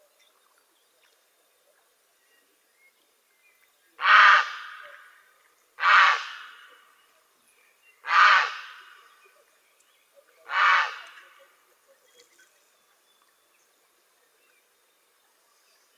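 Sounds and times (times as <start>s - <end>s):
grey heron giving harsh gravelly croaks: 4.0s - 5.1s, 5.8s - 6.8s, 8.0s - 9.1s, 10.4s - 11.4s.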